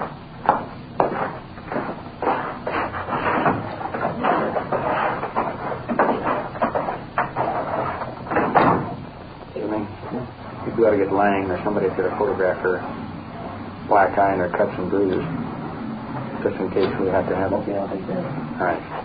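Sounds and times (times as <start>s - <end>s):
shuffling: 0.0s - 19.0s
wooden door shutting with knocks and bangs: 3.2s - 9.1s
speech: 11.0s - 13.0s, 13.9s - 15.4s, 16.4s - 19.0s.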